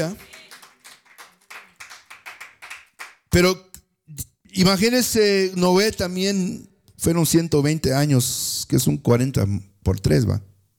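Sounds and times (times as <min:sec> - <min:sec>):
speech: 0:00.0 - 0:00.3, 0:03.3 - 0:10.5
church congregation clapping hands in a rhythmic beat: 0:00.0 - 0:03.8.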